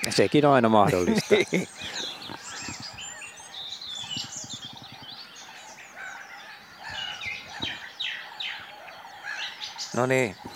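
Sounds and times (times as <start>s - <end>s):
song thrush singing at dawn by Lake Hyvelänjärvi: 0.0s - 10.5s
speech: 0.1s - 2.4s, 10.0s - 10.5s
laughter: 0.8s - 2.5s.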